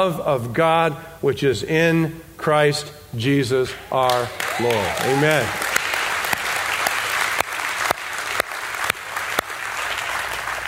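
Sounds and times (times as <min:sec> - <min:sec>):
speech: 0:00.0 - 0:05.7
audience clapping: 0:04.0 - 0:10.6.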